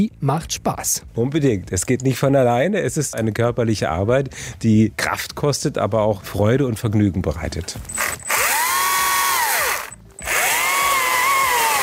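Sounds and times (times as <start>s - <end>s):
speech: 0.0s - 8.3s
motorized saw cutting pieces from a tree trunk for firewood: 7.9s - 11.8s.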